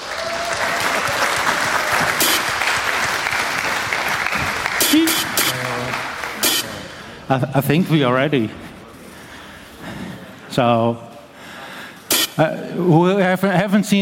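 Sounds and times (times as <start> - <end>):
crowd clapping: 0.0 - 7.2
speech: 7.3 - 8.6, 10.6 - 11.1, 12.4 - 14.0.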